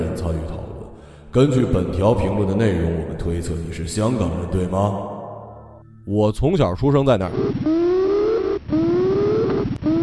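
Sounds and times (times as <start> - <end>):
speech: 1.3 - 5.2, 6.1 - 7.7
buzzer-like machine shriek: 7.4 - 10.0.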